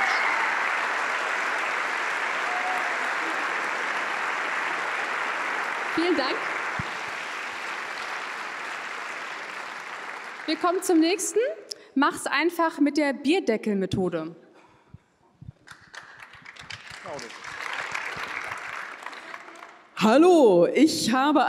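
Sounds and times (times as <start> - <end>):
audience applause: 0.0 - 11.4, 15.7 - 20.0
speech: 6.0 - 6.6, 10.5 - 14.4, 17.1 - 17.4, 20.0 - 21.4.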